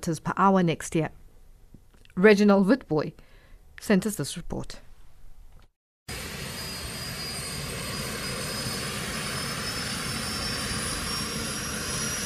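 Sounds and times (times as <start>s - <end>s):
speech: 0.0s - 1.2s, 2.2s - 3.2s, 3.8s - 4.9s
Bloodhound jet-powered supersonic land speed car: 6.1s - 12.2s.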